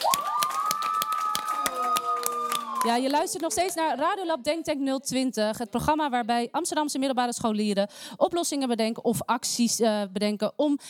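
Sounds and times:
scattered claps from a small audience: 0.0 - 3.8
speech: 2.8 - 10.8.

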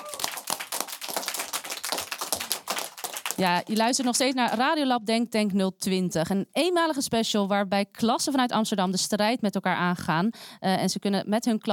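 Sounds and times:
applause: 0.0 - 4.7
speech: 3.4 - 11.7.

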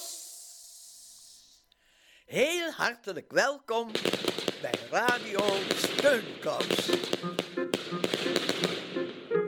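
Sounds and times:
speech: 2.3 - 8.4
leftover firework rockets being launched into the sky: 3.9 - 9.3.

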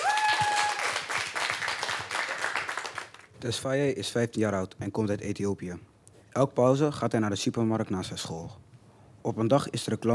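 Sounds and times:
audience applause: 0.0 - 3.3
speech: 3.4 - 8.6, 9.2 - 10.1.

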